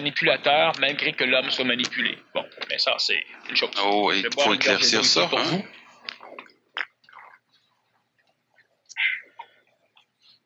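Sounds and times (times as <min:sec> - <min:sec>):
speech: 0:00.0 - 0:05.8
person taking a sip of a drink: 0:06.0 - 0:07.6.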